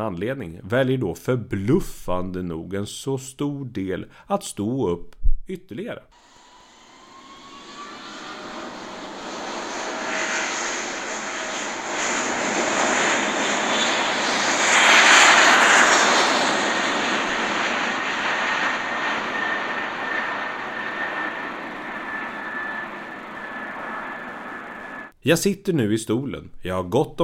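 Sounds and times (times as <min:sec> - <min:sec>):
speech: 0:00.0 - 0:06.3, 0:25.2 - 0:27.2
airplane engine drone heard from inside the cabin: 0:06.2 - 0:25.1.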